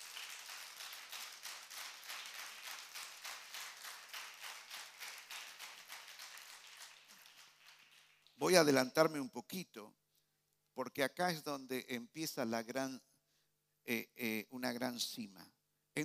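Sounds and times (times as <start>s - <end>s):
audience applause: 0.0s - 8.4s
speech: 8.4s - 10.0s, 10.8s - 13.1s, 13.8s - 16.0s.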